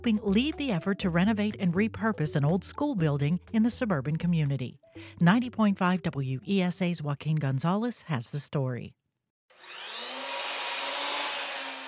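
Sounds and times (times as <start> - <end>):
speech: 0.0 - 9.0
saw cutting wood: 9.5 - 11.8.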